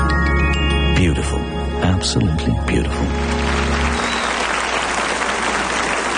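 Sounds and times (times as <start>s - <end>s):
speech: 1.0s - 3.4s
warm round of applause: 3.0s - 6.1s.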